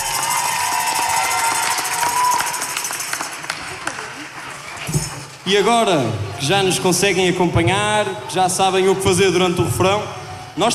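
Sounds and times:
audience applause: 0.0 - 4.9
speech: 5.5 - 10.7.

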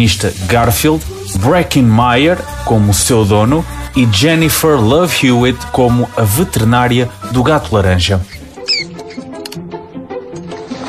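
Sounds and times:
speech: 0.0 - 8.3
mouse squeaking: 8.2 - 9.6.

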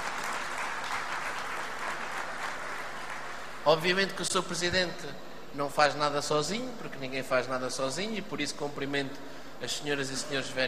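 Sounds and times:
audience applause: 0.0 - 3.6
speech: 3.7 - 10.6.

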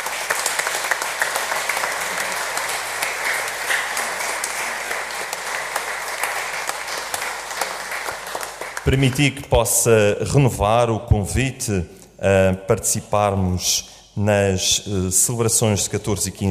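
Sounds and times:
audience applause: 0.0 - 9.2
speech: 8.8 - 16.5.

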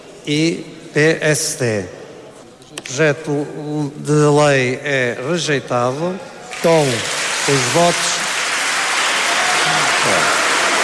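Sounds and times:
speech: 0.2 - 2.0, 2.9 - 8.1
parliament deputies applauding: 6.5 - 10.8.

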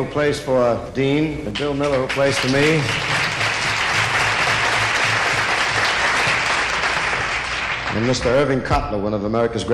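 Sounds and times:
speech: 0.0 - 3.3, 7.9 - 9.7
audience applause: 1.8 - 8.3.

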